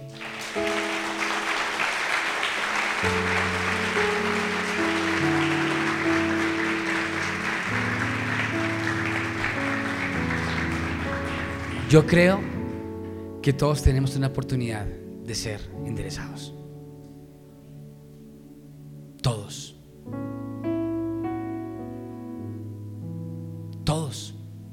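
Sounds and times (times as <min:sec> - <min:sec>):
audience applause: 0:00.0 - 0:12.7
organ-like keyboard chords: 0:00.0 - 0:24.7
speech: 0:11.9 - 0:12.5, 0:13.4 - 0:16.6, 0:19.2 - 0:20.2.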